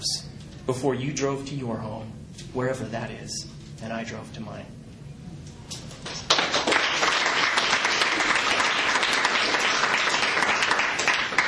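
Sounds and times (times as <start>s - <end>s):
speech: 0.0s - 4.8s
audience applause: 6.1s - 11.4s.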